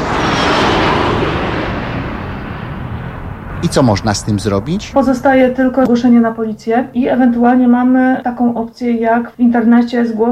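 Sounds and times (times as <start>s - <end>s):
airplane flying overhead: 0.0s - 7.4s
speech: 3.6s - 10.3s.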